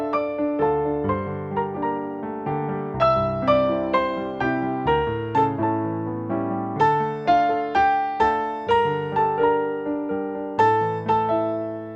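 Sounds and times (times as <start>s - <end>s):
piano: 0.0s - 11.9s.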